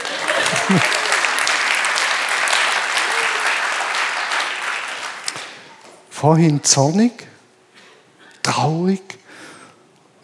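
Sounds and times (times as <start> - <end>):
laughter: 0.0 - 1.5
audience applause: 0.0 - 5.8
speech: 0.7 - 1.0, 6.2 - 7.3.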